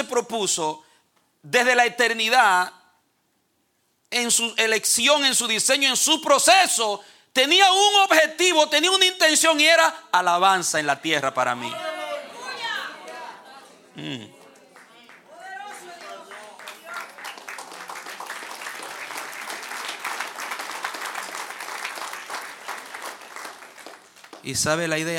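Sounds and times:
speech: 0.0s - 2.8s, 4.1s - 11.9s, 14.0s - 14.4s, 24.4s - 25.1s
audience applause: 14.0s - 24.6s.

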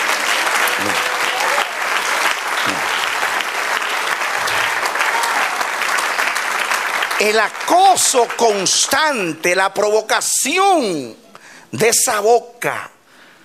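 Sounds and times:
audience applause: 0.0s - 9.3s
speech: 7.2s - 12.9s.

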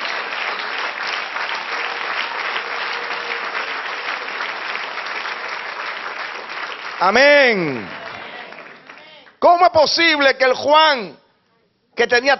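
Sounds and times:
audience applause: 0.0s - 9.4s
speech: 7.0s - 8.0s, 9.4s - 11.2s, 12.0s - 12.3s.

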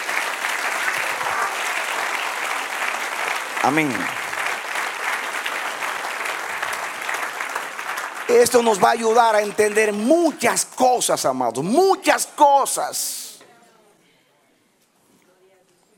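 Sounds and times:
audience applauding: 0.0s - 11.0s
speech: 3.6s - 4.2s, 8.3s - 13.2s.

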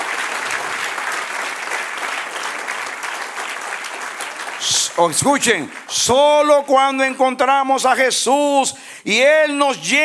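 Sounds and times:
audience applauding: 0.0s - 6.6s
speech: 4.6s - 10.0s.

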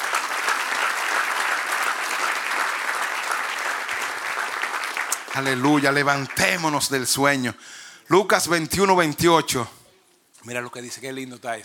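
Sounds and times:
audience applauding: 0.0s - 7.2s
speech: 5.4s - 9.8s, 10.4s - 11.6s.

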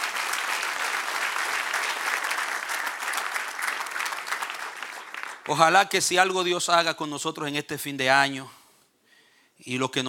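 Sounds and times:
audience applause: 0.0s - 5.8s
speech: 5.5s - 8.6s, 9.6s - 10.0s.

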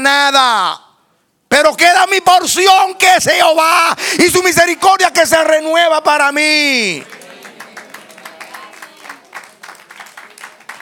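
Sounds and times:
speech: 0.0s - 0.9s, 1.6s - 7.2s
a handful of people clapping in a reverberant room: 6.8s - 10.8s.

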